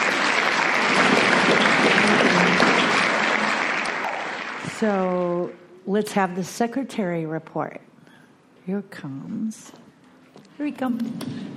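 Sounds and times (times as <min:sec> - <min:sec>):
applause for a speaker at an Alcoholics Anonymous meeting: 0:00.0 - 0:04.9
speech: 0:04.8 - 0:07.9, 0:08.7 - 0:09.8, 0:10.6 - 0:11.5.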